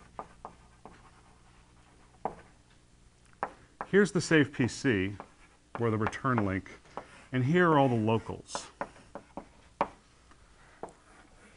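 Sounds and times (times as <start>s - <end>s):
lecturer drawing an activation record diagram on the board: 0.0s - 1.3s, 2.2s - 2.5s, 3.4s - 3.9s, 5.1s - 7.2s, 8.5s - 10.0s, 10.8s - 11.2s
speech: 3.9s - 8.7s.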